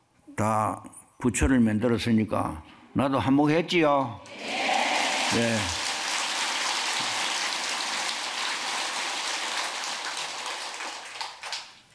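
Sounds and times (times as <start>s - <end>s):
speech: 0.4s - 5.8s
audience applause: 4.3s - 11.8s.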